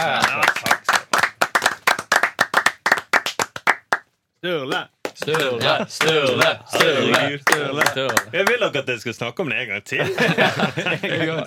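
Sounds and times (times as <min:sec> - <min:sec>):
laughter: 0:00.0 - 0:00.7, 0:05.4 - 0:06.6, 0:10.0 - 0:11.4
audience clapping in a steady rhythm: 0:00.0 - 0:08.8
speech: 0:04.4 - 0:11.4.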